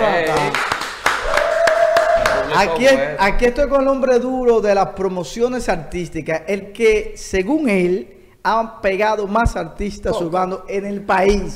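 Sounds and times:
applause: 0.1s - 2.8s
speech: 2.6s - 11.5s.

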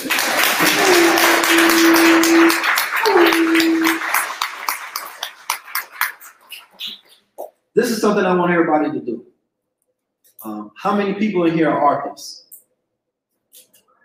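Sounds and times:
audience clapping: 0.0s - 7.4s
speech: 8.1s - 9.3s, 10.4s - 12.4s.

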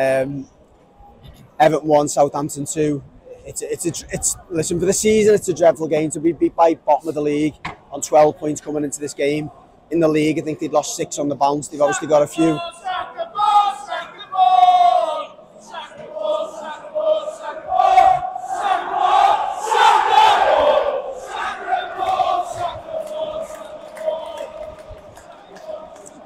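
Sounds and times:
speech: 0.0s - 0.6s, 1.6s - 13.1s
football crowd chanting in protest: 11.9s - 26.2s.

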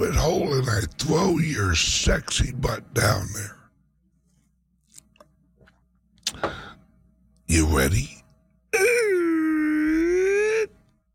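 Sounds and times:
speech: 0.0s - 3.6s, 7.5s - 8.1s
voice imitating a creaking door swinging open: 8.8s - 10.7s.

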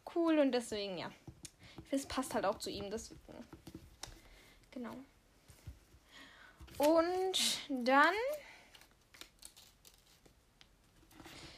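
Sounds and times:
speech: 0.1s - 1.2s, 1.8s - 3.5s, 4.8s - 5.1s, 6.8s - 8.4s
small paper slip crinkling as it is folded: 8.1s - 11.4s.

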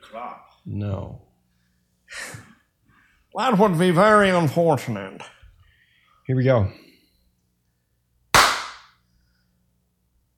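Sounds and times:
speech: 0.1s - 1.3s, 3.3s - 5.4s, 6.3s - 6.8s
single hand clap: 8.4s - 8.9s.

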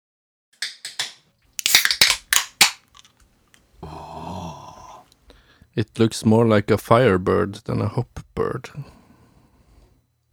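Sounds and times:
beer bottle being opened: 0.6s - 3.2s
speech: 5.8s - 9.0s.

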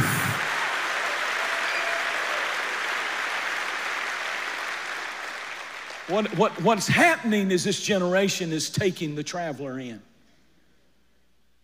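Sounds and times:
crowd clapping: 0.0s - 7.2s
speech: 6.1s - 10.1s.

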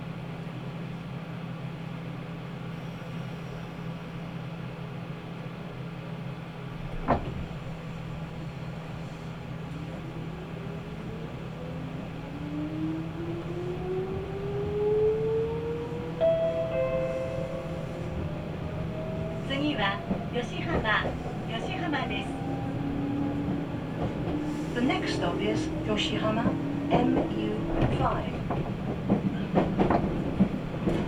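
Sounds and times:
Nagoya Railroad Mikawa Line train low hum: 0.0s - 31.0s
train rising whines as it gets under way: 7.1s - 31.0s.

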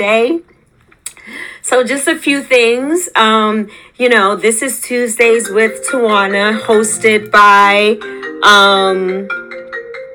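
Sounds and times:
speech: 0.0s - 0.5s, 1.3s - 9.4s
mobile phone ringtone: 5.4s - 10.1s.

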